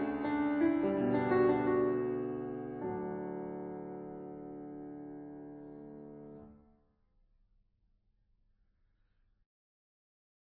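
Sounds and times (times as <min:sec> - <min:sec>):
piano: 0:00.0 - 0:06.8.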